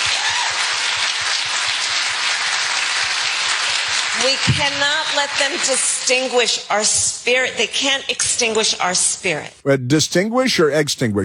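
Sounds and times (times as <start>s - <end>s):
crowd applause at rally: 0.0s - 5.9s
speech: 4.2s - 11.2s.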